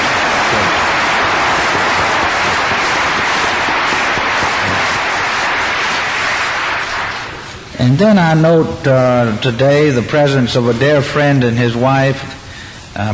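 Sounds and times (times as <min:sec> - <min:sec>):
round of applause for choir: 0:00.0 - 0:07.6
speech: 0:07.8 - 0:12.4, 0:13.0 - 0:13.1.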